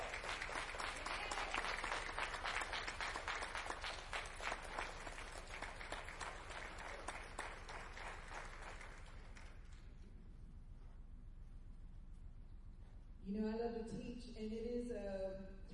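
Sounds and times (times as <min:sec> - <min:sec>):
audience applause at a church Bible study night: 0:00.0 - 0:09.7
speech: 0:13.4 - 0:15.7.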